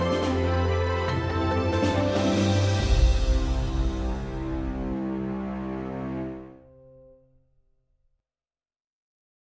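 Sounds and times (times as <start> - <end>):
hopeful action adventure music: 0.0 - 7.3.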